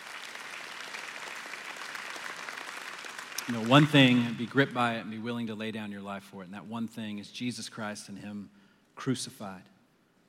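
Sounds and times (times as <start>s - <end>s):
audience clapping: 0.0s - 5.1s
speech: 3.5s - 9.7s.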